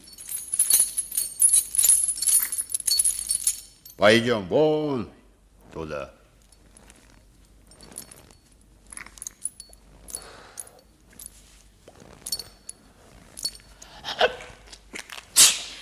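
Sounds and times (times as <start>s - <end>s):
speech: 4.0s - 6.2s
sneeze: 15.3s - 15.8s.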